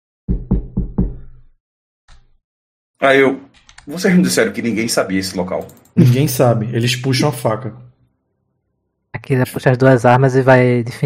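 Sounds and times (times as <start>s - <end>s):
knocking on a door: 0.3s - 1.3s
speech: 3.0s - 7.8s, 9.2s - 11.0s.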